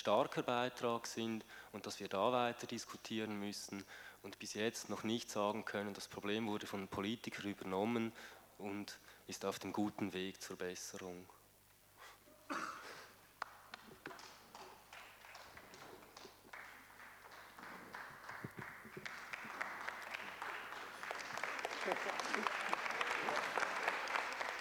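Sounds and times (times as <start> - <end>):
speech: 0.0 - 11.4
hesitant audience applause: 13.4 - 24.6.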